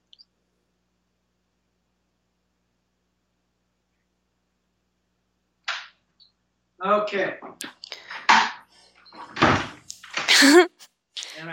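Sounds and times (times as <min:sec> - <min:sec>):
speech: 0:06.8 - 0:07.8, 0:10.4 - 0:10.7
door being closed: 0:09.2 - 0:10.4.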